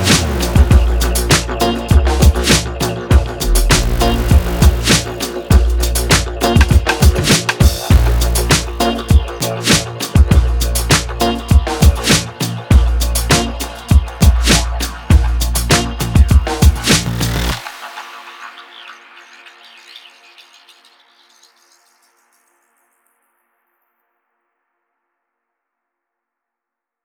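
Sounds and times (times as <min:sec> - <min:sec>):
ethnostep music: 0:00.0 - 0:20.4.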